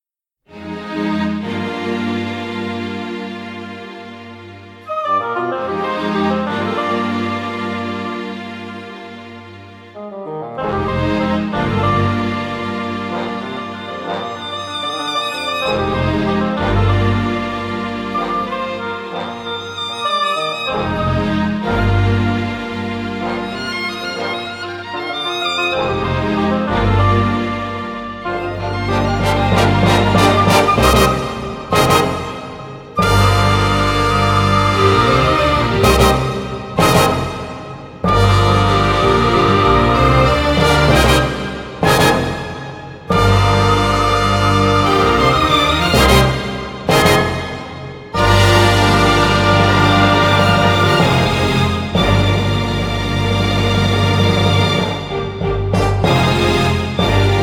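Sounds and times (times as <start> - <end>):
orchestra playing: 0.5 - 57.4.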